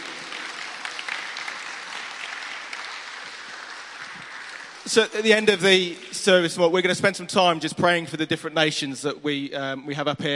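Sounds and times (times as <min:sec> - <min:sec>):
crowd applauding: 0:00.0 - 0:06.5
speech: 0:04.8 - 0:10.3.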